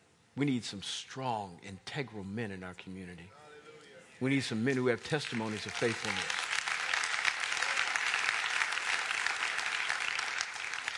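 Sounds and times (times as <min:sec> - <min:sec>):
speech: 0:00.4 - 0:03.4, 0:04.2 - 0:06.5
audience applause: 0:05.0 - 0:10.9.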